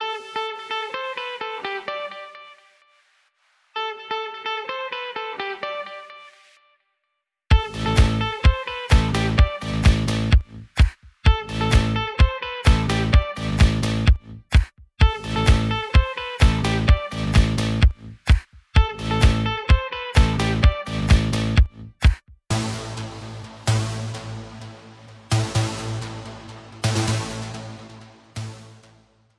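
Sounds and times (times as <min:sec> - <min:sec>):
triumphant techno music: 0:07.5 - 0:29.2.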